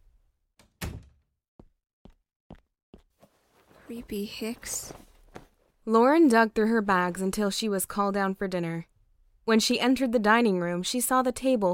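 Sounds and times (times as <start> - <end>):
door closing shut: 0.6 - 1.2
speech: 3.9 - 5.0, 5.8 - 8.9, 9.5 - 11.7.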